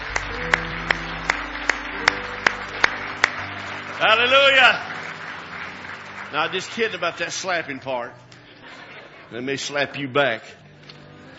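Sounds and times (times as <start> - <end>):
audience clapping hands in praise in unison: 0.0 - 8.0
speech: 4.0 - 4.9, 6.3 - 8.2, 9.3 - 10.6.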